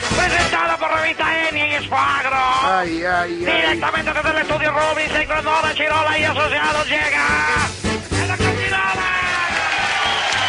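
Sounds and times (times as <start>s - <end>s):
speech: 1.1s - 7.8s
audience applause and cheering: 8.3s - 10.4s.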